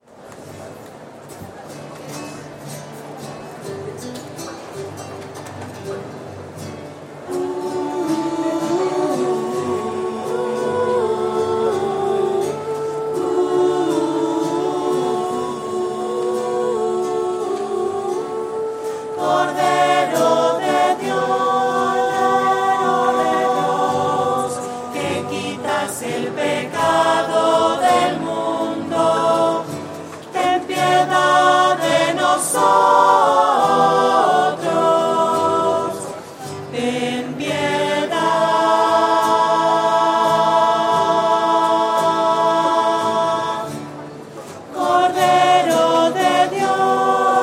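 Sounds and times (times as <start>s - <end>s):
voices: 0.7s - 47.4s.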